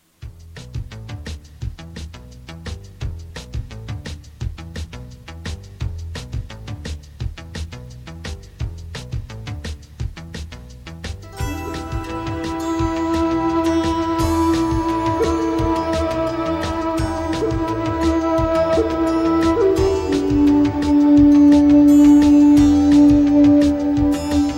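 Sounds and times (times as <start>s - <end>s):
solo flute piece: 11.3s - 24.5s.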